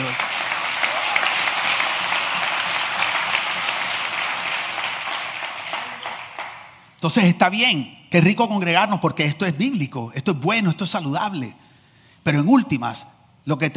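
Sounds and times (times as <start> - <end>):
audience applause: 0.0 - 6.8
speech: 7.0 - 11.6, 12.2 - 13.7.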